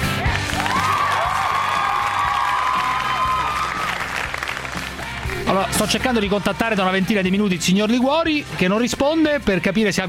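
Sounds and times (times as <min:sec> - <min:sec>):
applause: 0:00.2 - 0:05.5
speech: 0:05.8 - 0:10.0.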